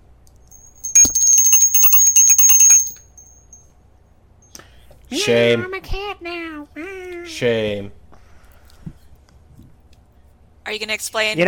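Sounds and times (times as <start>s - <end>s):
shame bell ringing: 0.6s - 3.6s
speech: 5.1s - 8.0s, 10.7s - 11.4s.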